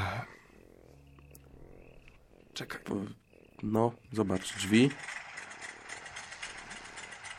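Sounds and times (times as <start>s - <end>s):
speech: 2.6s - 5.2s
propeller airplane engine starting in an adventure video game: 4.2s - 7.3s.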